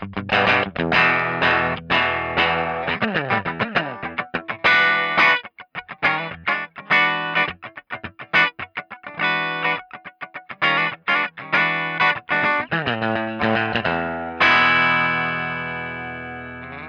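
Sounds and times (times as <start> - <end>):
Fender Twin guitar amplifier bright tone: 0.0 - 16.8.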